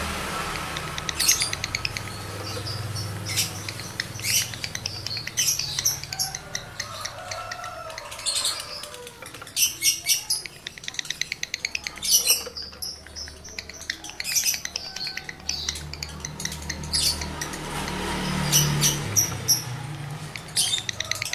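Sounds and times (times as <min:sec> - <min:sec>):
lovebird song: 0:00.1 - 0:21.3.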